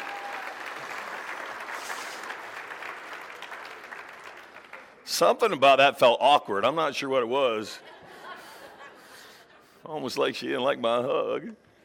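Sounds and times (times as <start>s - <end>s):
crowd applauding: 0.0s - 5.0s
speech: 5.1s - 7.9s, 9.9s - 11.6s
laughter: 7.7s - 9.8s.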